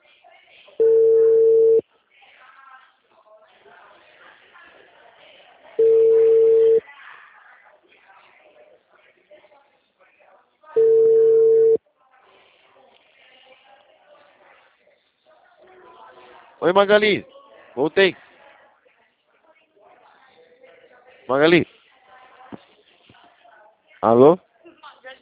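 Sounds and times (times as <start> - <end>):
telephone ringing: 0.8 - 1.8, 5.8 - 6.8, 10.8 - 11.8
speech: 16.6 - 18.2, 21.3 - 21.6, 24.0 - 24.5.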